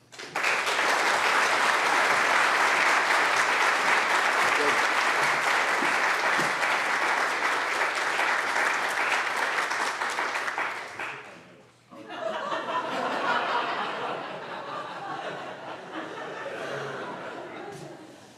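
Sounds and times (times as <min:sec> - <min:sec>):
audience applause welcoming a speaker: 0:00.0 - 0:11.4
laughter: 0:11.9 - 0:18.3.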